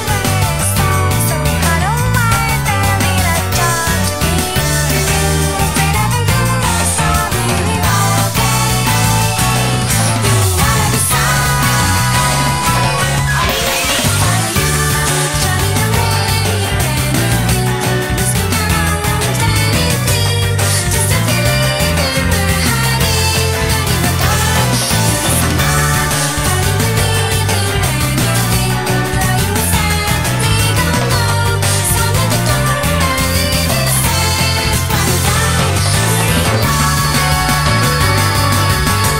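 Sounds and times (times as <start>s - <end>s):
guitar pop music: 0.0s - 39.1s.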